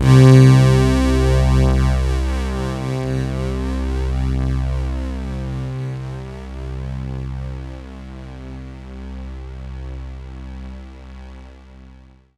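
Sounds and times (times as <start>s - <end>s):
synth line: 0.0s - 4.2s.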